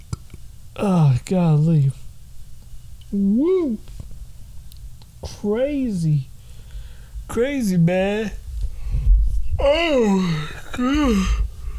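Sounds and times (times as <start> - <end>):
low rumbling noise: 0.0 - 11.7
speech: 0.8 - 2.0, 3.1 - 4.0, 5.2 - 6.3, 7.3 - 8.4, 9.6 - 11.4
person yawning: 3.1 - 3.8, 9.6 - 11.5.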